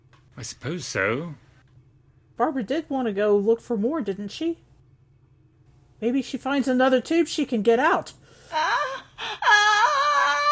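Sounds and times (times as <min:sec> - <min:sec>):
speech: 0:00.4 - 0:01.4, 0:02.4 - 0:04.6, 0:06.0 - 0:08.6
woman screaming in distance: 0:08.5 - 0:10.5.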